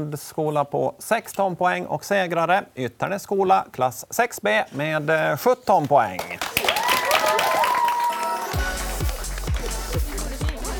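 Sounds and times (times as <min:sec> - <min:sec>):
speech: 0:00.0 - 0:06.6
audience cheering: 0:06.5 - 0:10.7.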